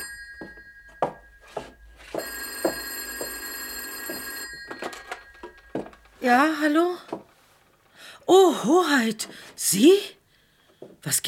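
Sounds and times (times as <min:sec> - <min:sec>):
old-style telephone bell ringing: 0:00.0 - 0:06.7
soft knocks: 0:00.4 - 0:06.2
speech: 0:06.2 - 0:07.2, 0:08.3 - 0:10.2, 0:11.0 - 0:11.2.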